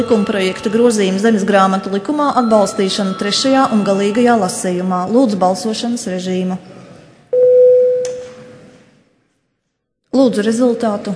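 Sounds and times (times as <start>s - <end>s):
electronic bell tone calling Saeima members to a vote: 0.0s - 4.9s, 7.4s - 8.1s
speech: 0.0s - 6.7s, 10.1s - 11.1s.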